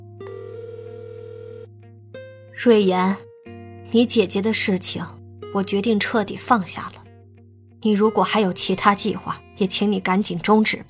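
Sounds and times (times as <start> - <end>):
electronic phone call ringing tone: 0.2 - 1.7
speech: 2.6 - 3.3, 3.9 - 7.0, 7.8 - 10.8.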